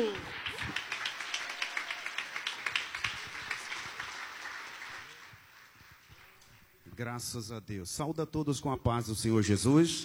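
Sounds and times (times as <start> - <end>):
audience applauding: 0.0 - 6.8
speech: 7.0 - 10.0.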